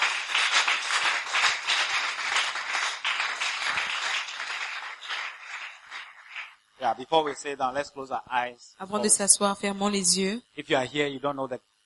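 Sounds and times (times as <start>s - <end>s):
audience clapping: 0.0s - 7.5s
speech: 6.8s - 11.7s.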